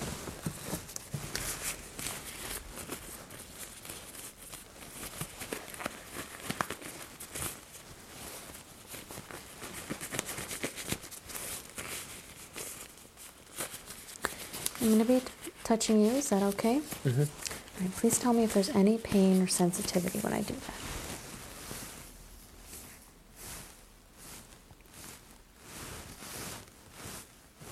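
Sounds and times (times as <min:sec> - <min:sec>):
thin plastic exam gloves being pulled onto hands: 0:00.0 - 0:27.6
speech: 0:14.9 - 0:21.0.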